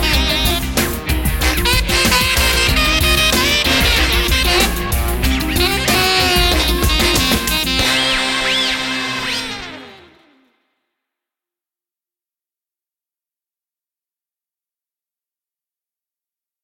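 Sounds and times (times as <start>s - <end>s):
intro music: 0.0s - 10.4s.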